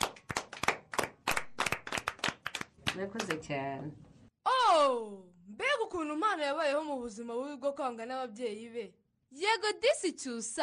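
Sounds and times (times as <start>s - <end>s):
small group clapping: 0.0s - 3.6s
speech: 3.0s - 4.1s, 4.8s - 10.6s.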